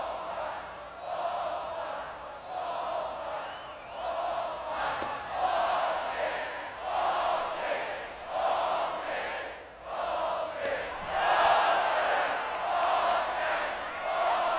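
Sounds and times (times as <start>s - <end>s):
large college baseball crowd chanting the ball count in unison: 0.0s - 14.5s.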